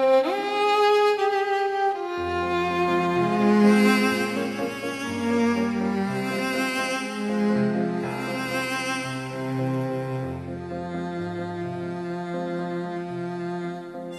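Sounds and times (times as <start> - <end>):
violins: 0.0 - 14.1.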